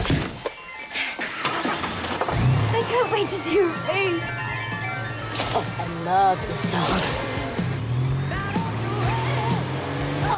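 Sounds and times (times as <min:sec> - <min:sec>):
car pulling off and driving up to a junction: 0:01.6 - 0:10.3
speech: 0:03.0 - 0:04.4, 0:05.5 - 0:07.3.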